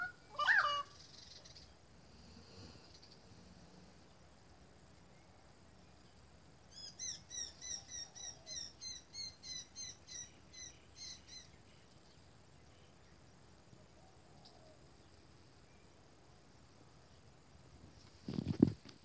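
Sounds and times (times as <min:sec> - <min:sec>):
loud sharp bird call: 0:00.0 - 0:01.3.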